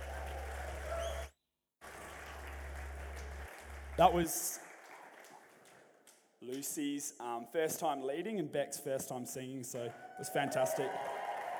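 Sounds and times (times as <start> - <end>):
audience applause for worship team: 0.0 - 6.8, 9.8 - 11.5
speech: 4.0 - 4.6, 6.5 - 11.2.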